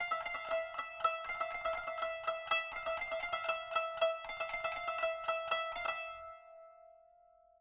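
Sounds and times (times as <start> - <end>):
kanun playing: 0.0 - 6.8.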